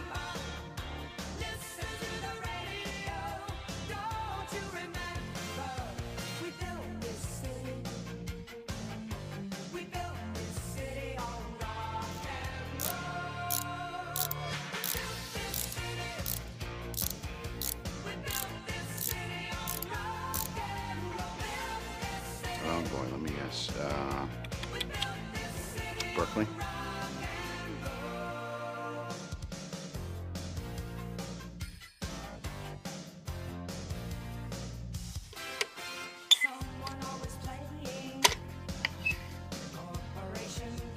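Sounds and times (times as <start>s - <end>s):
music: 0.0s - 40.9s
drilling: 12.8s - 20.6s
mechanical whirring: 14.2s - 16.4s, 17.0s - 20.5s
sharp clicks and taps: 24.4s - 25.2s.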